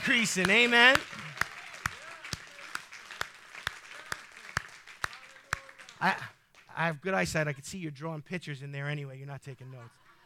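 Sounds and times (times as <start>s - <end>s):
audience clapping in rhythm: 0.0s - 7.0s
speech: 0.1s - 1.2s, 6.0s - 10.0s.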